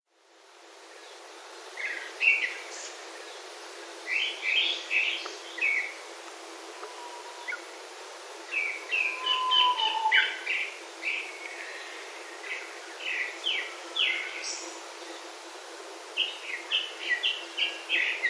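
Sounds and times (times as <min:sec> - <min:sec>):
steady background hiss: 0:00.1 - 0:18.2
grey-backed thrush calling: 0:08.6 - 0:10.6.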